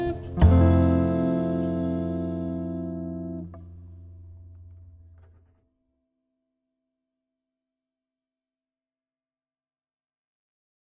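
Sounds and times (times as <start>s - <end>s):
jazz guitar: 0.0s - 5.4s.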